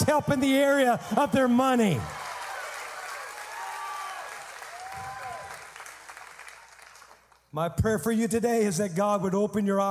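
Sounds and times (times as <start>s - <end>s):
speech: 0.1s - 2.2s, 7.6s - 9.8s
audience cheering: 0.3s - 7.1s
audience clapping: 1.8s - 7.5s.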